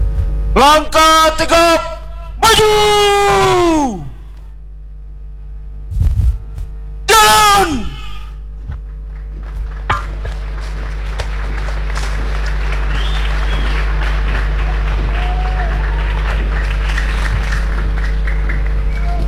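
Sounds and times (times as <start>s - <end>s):
constant hum: 0.0s - 19.2s
speech: 0.6s - 4.0s
audience applause at a flag-lowering ceremony: 9.1s - 19.2s.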